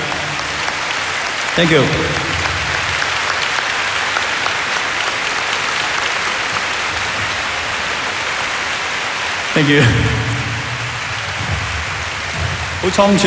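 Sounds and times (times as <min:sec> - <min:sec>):
audience applause: 0:00.0 - 0:13.2
speech: 0:01.6 - 0:02.3, 0:09.6 - 0:10.2, 0:12.8 - 0:13.2.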